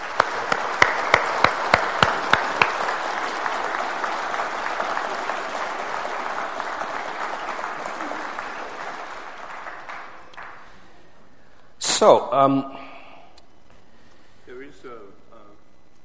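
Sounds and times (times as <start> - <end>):
congregation clapping during a church service: 0.0 - 11.1
speech: 12.0 - 12.8.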